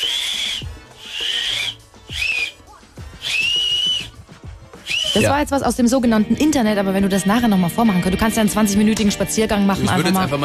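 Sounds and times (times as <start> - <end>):
whistle blown between pressed thumbnails: 0.0 - 5.4
speech: 5.2 - 10.4.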